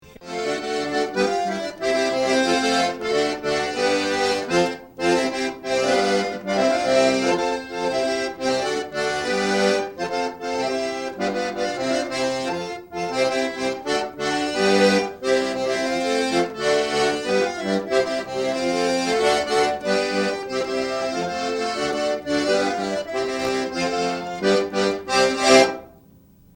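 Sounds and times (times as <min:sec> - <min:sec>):
polka music: 0:00.0 - 0:26.0.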